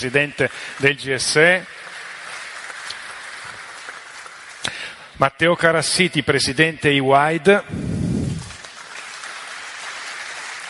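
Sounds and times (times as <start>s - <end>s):
speech: 0.0s - 1.8s, 5.2s - 7.9s
audience applause: 0.1s - 5.0s, 7.8s - 10.6s.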